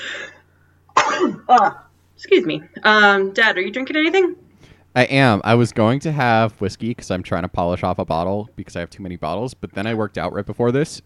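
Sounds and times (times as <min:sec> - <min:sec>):
sneeze: 0:01.0 - 0:01.5
speech: 0:01.5 - 0:04.4, 0:05.0 - 0:11.0.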